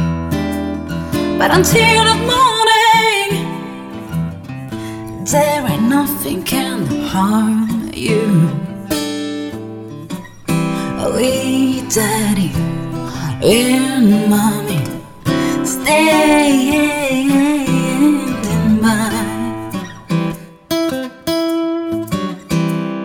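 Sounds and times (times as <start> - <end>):
guitar: 0.0 - 23.0
voice: 1.4 - 3.7, 5.2 - 8.7, 10.8 - 19.7.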